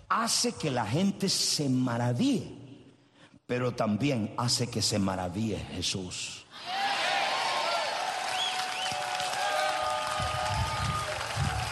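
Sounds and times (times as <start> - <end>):
speech: 0.1 - 2.6, 3.5 - 6.8
audience applauding: 7.5 - 11.7.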